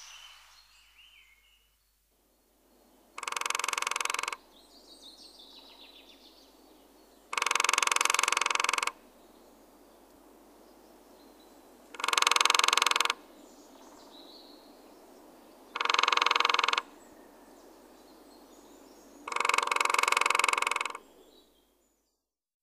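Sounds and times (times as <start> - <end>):
Lesser spotted woodpecker drumming: 3.2 - 4.4, 7.3 - 9.0, 12.0 - 13.2, 15.8 - 16.9, 19.3 - 21.0.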